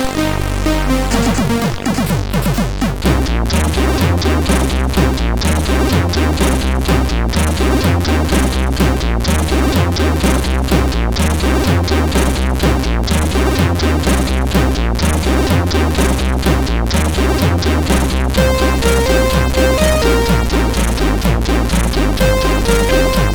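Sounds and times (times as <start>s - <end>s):
tune on CSG8580R5 chip: 0.2s - 23.3s.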